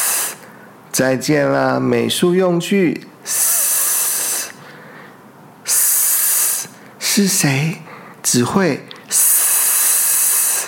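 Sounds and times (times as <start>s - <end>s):
snake hissing: 0.0s - 0.4s, 3.2s - 4.6s, 5.6s - 6.8s, 9.1s - 10.6s
speech: 1.0s - 3.4s, 7.2s - 9.2s.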